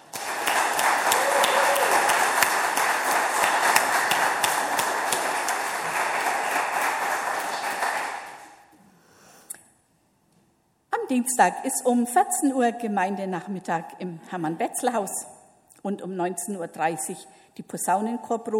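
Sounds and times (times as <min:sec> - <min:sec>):
audience applause: 0:00.0 - 0:08.6
speech: 0:11.1 - 0:18.5.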